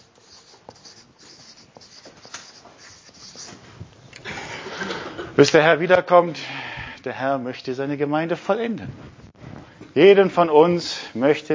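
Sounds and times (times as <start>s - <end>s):
pen or marker scratching across a board or paper: 0.0s - 3.6s
speech: 5.4s - 9.2s, 10.0s - 11.5s.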